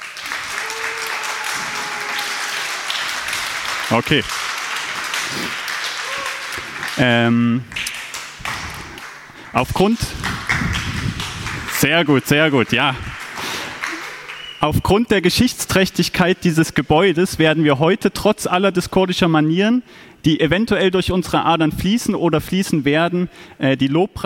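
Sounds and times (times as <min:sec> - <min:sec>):
audience applause: 0:00.0 - 0:09.4, 0:10.2 - 0:14.6
speech: 0:03.9 - 0:04.5, 0:05.3 - 0:05.6, 0:07.0 - 0:07.8, 0:09.5 - 0:10.9, 0:11.8 - 0:13.1, 0:14.6 - 0:24.2.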